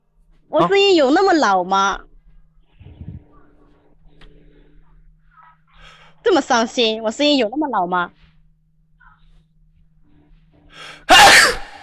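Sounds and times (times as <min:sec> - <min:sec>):
speech: 0:00.5 - 0:02.1, 0:06.2 - 0:08.2, 0:10.8 - 0:11.6
loud sneeze: 0:10.9 - 0:11.8.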